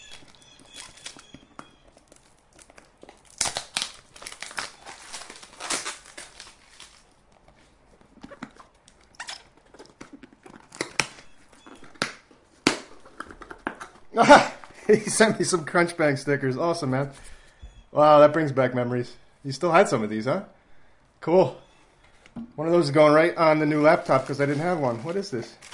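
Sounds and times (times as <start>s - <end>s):
packaging crinkling while unpacking a toner box: 0.0s - 14.9s, 23.4s - 25.7s
speech: 14.2s - 17.4s, 18.0s - 20.6s, 21.2s - 21.6s, 22.6s - 25.7s.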